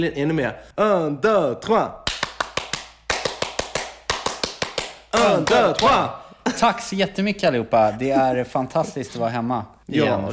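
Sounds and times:
speech: 0.0 - 2.0, 5.2 - 10.3
French applause, rhythmic group clapping: 2.0 - 6.1.

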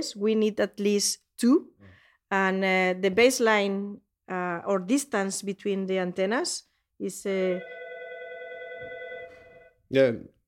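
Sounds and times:
speech: 0.0 - 1.7, 2.3 - 7.8, 9.9 - 10.4
emergency telephone ringing: 7.4 - 9.9.

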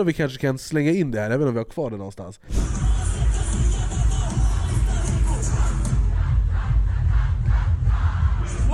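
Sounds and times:
speech: 0.0 - 2.8
festival crowd on Åland singing along to a song: 2.7 - 8.6.

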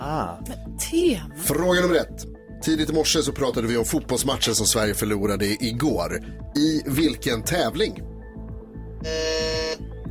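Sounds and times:
low rhythmic bed of music: 0.0 - 10.0
speech: 0.4 - 8.1, 9.0 - 9.9
quiz buzzer sounding after contestants buzz in: 9.0 - 10.0.

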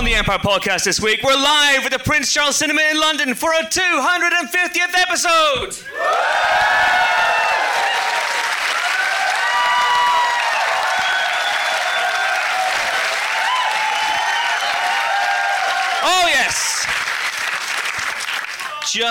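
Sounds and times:
speech: 0.1 - 6.8
live audience at the Prince Charles Cinema in London cheering and applauding: 5.9 - 19.0.

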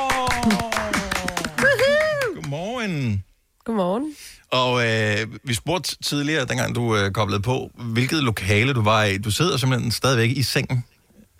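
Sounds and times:
small group clapping: 0.0 - 2.8
speech: 0.4 - 0.7, 2.8 - 10.9.

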